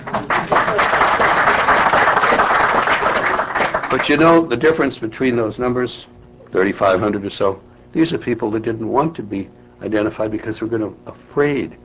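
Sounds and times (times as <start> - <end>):
audience clapping: 0.0 - 4.4
speech: 0.2 - 0.9, 4.1 - 11.8.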